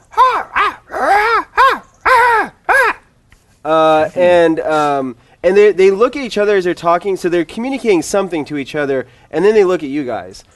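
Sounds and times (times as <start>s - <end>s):
human voice imitating bird-like cawing: 0.0s - 3.1s
speech: 3.6s - 10.5s.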